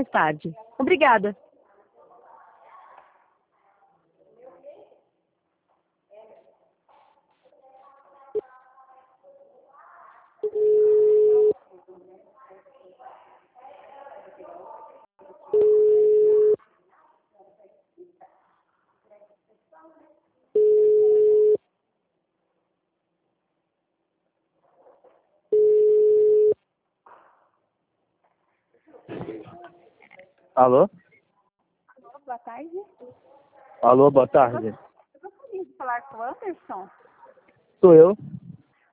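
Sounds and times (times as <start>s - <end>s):
speech: 0.0s - 1.4s, 30.6s - 31.0s, 32.3s - 34.9s, 35.6s - 37.0s, 37.8s - 38.4s
Brazilian telephone busy signal: 10.4s - 11.5s, 15.6s - 16.6s, 20.6s - 21.6s, 25.6s - 26.6s.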